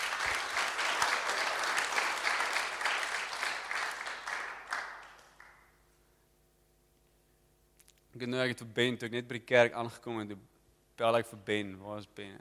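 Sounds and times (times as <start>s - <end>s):
audience clapping: 0.0s - 5.8s
speech: 8.2s - 12.3s.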